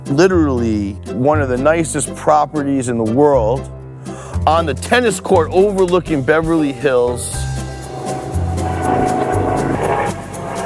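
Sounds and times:
speech: 0:00.1 - 0:03.8, 0:04.4 - 0:07.5
helicopter in LA: 0:08.0 - 0:10.6.

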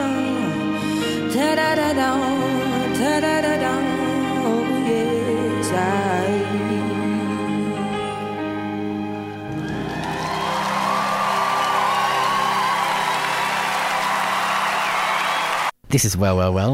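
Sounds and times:
music: 0:00.0 - 0:15.7
speech: 0:01.4 - 0:04.0, 0:15.9 - 0:16.7
audience applause and cheering: 0:09.3 - 0:15.8.

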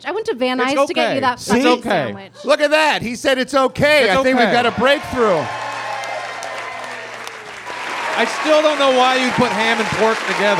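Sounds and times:
speech: 0:00.0 - 0:05.6, 0:08.2 - 0:10.5
audience clapping: 0:04.3 - 0:10.5.

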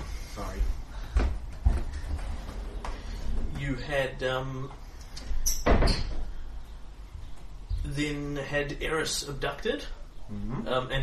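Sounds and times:
low hum: 0:00.0 - 0:11.0
speech: 0:03.7 - 0:04.8, 0:07.9 - 0:11.0
door shutting with a heavy thud: 0:05.6 - 0:06.3.

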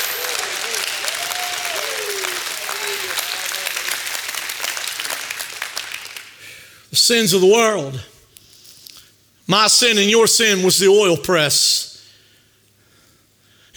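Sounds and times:
audience shouting praise: 0:00.0 - 0:04.8
audience clapping: 0:00.0 - 0:06.7
speech: 0:07.0 - 0:08.1, 0:09.5 - 0:11.9.

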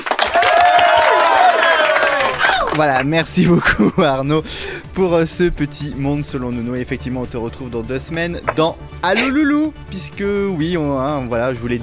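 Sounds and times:
audience applauding: 0:00.0 - 0:03.4
whoops and cheering voices: 0:00.1 - 0:02.8
laughter: 0:00.2 - 0:05.2, 0:08.5 - 0:09.7
speech: 0:02.8 - 0:11.8.

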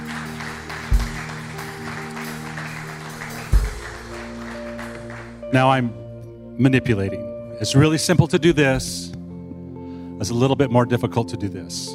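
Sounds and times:
audience applause: 0:00.0 - 0:05.5
speech: 0:05.5 - 0:06.0, 0:06.6 - 0:09.2, 0:10.2 - 0:11.9.

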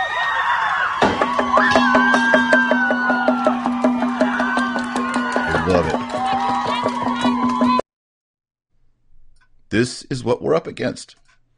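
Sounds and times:
crowd cheering and shouting: 0:00.0 - 0:07.8
steady rhythmic claps or beats: 0:01.2 - 0:07.8
speech: 0:09.7 - 0:11.2.

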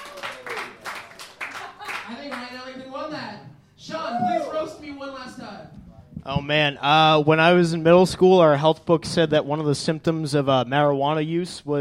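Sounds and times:
crowd clapping: 0:00.0 - 0:02.6
speech: 0:02.5 - 0:11.8.

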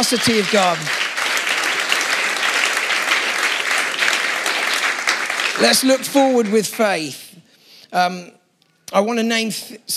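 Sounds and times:
speech: 0:00.0 - 0:01.1, 0:05.6 - 0:07.2, 0:07.9 - 0:09.9
crowd clapping: 0:00.0 - 0:07.3.

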